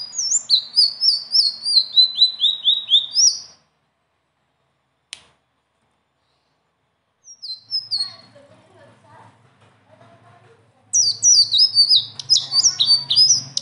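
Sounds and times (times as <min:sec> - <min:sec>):
leafbird song: 0:00.0 - 0:03.7, 0:07.2 - 0:08.4, 0:10.9 - 0:13.5
click: 0:05.1 - 0:05.3.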